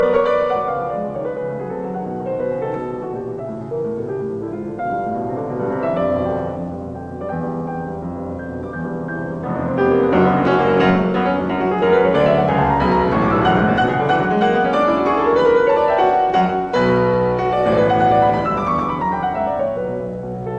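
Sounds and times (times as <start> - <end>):
piano sonata in E major played prestissimo: 0.0 - 20.5.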